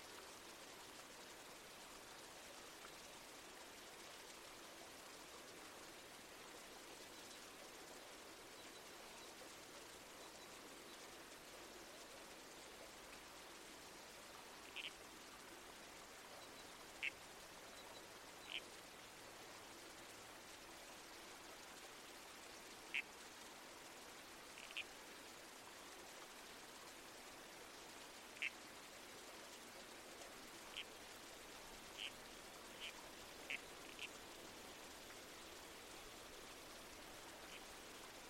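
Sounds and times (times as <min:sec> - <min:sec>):
creek water: 0:00.0 - 0:38.2
wind in trees: 0:00.0 - 0:38.2
red-crowned toadlet calls: 0:14.6 - 0:15.0, 0:17.0 - 0:17.2, 0:17.9 - 0:18.7, 0:22.9 - 0:23.1, 0:24.6 - 0:24.9, 0:28.4 - 0:28.6, 0:30.7 - 0:30.9, 0:31.8 - 0:34.2.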